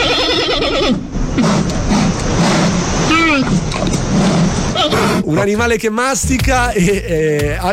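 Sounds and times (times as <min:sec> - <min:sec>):
donkey braying: 0:00.0 - 0:05.5
speech: 0:05.3 - 0:07.7.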